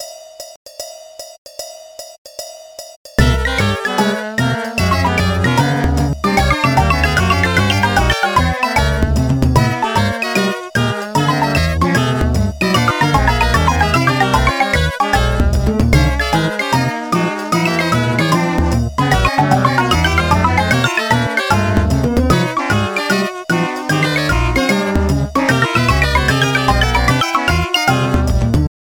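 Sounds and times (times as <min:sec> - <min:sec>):
cool sailor jazz music: 0:03.2 - 0:28.7.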